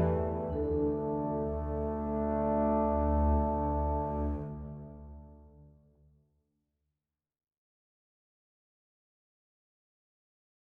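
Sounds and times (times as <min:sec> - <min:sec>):
world music: 0:00.0 - 0:03.7.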